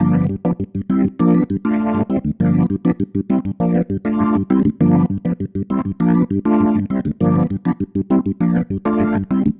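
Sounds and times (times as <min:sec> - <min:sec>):
organ pattern: 0:00.0 - 0:09.5.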